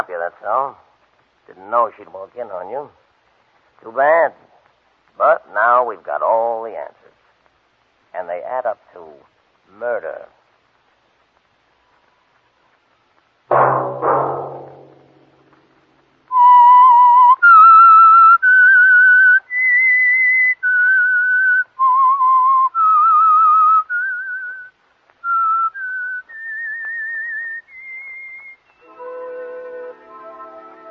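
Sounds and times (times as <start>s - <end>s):
speech: 0.2s - 0.9s, 1.5s - 3.0s, 3.8s - 4.5s, 5.2s - 7.1s, 8.1s - 10.4s
whistled signal tune: 16.3s - 30.8s.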